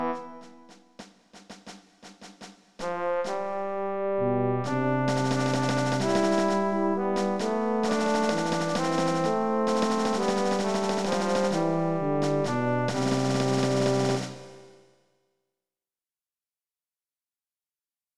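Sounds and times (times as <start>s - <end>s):
fanfare: 0.0s - 0.8s, 2.8s - 14.8s.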